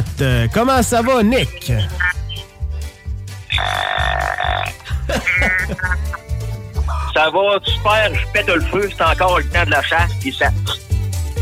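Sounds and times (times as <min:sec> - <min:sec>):
speech: 0:00.2 - 0:02.1, 0:03.6 - 0:06.2, 0:07.2 - 0:10.8
deer call: 0:03.5 - 0:06.2
laughter: 0:04.7 - 0:07.1.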